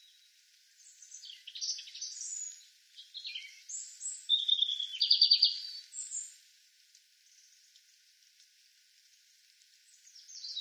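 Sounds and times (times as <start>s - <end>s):
European robin song: 0.8s - 6.3s.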